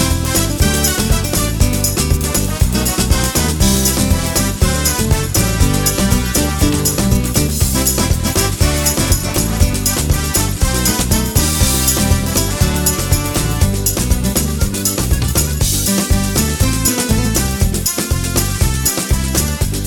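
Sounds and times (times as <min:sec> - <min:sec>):
soca music: 0:00.0 - 0:19.8.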